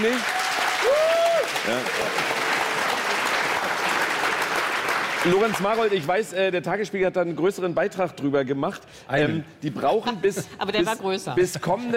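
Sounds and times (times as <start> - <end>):
speech: 0.0 - 2.4, 5.2 - 11.9
audience applause: 0.0 - 6.3.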